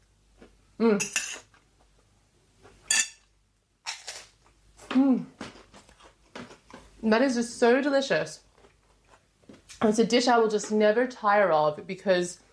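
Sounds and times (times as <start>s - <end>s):
speech: 0.8s - 1.5s, 7.0s - 8.4s, 9.8s - 12.4s
fork and spoon clinking and scraping on a plate of nasi goreng: 2.9s - 3.2s.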